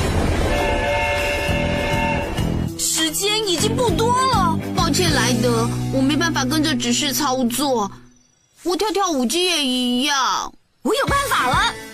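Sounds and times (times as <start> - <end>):
train arriving at a station: 0.0 - 3.0
speech: 3.2 - 8.0, 8.6 - 11.8.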